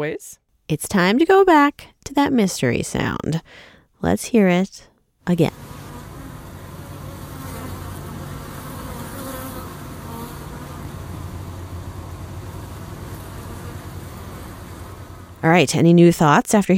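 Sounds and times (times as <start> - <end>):
speech: 0.0 - 5.8, 15.4 - 16.7
honeybees buzzing in an apiary: 5.5 - 15.5.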